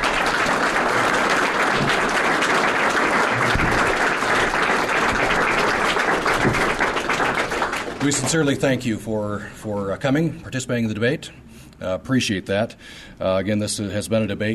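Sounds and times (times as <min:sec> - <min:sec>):
audience applause: 0:00.0 - 0:08.7
speech: 0:08.0 - 0:14.5.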